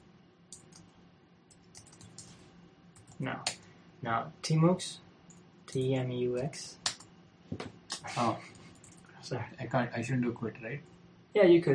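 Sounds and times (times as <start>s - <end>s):
typing a password on a computer keyboard: 0.5s - 0.9s, 1.5s - 2.4s, 3.0s - 3.2s, 8.5s - 9.0s
speech: 3.2s - 5.1s, 5.7s - 6.8s, 7.5s - 8.5s, 9.2s - 11.7s.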